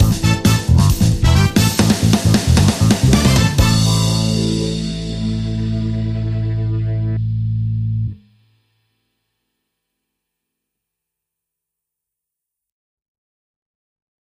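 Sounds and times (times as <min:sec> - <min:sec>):
funky soul stinger: 0:00.0 - 0:08.2.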